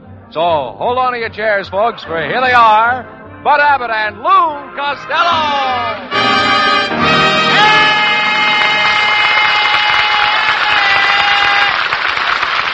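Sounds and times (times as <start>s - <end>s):
speech: 0.3s - 7.8s
brassy band fanfare: 3.6s - 12.6s
studio audience applause and cheering: 5.9s - 12.7s.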